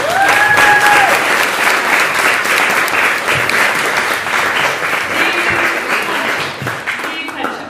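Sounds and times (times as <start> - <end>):
audience applause: 0.0 - 7.6.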